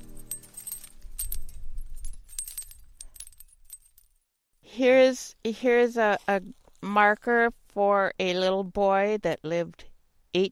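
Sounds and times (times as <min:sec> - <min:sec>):
glass wind chime tinkling: 0:00.0 - 0:04.2
speech: 0:04.8 - 0:10.5.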